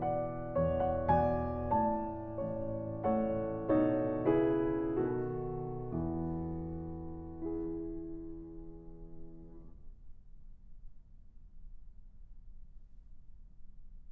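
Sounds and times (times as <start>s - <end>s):
waltz piece in E major: 0.0s - 9.5s.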